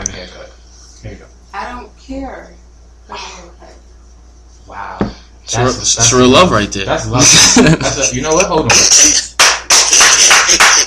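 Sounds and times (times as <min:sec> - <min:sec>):
speech: 0:00.3 - 0:03.6, 0:04.7 - 0:09.3
hand clapping: 0:08.4 - 0:10.8.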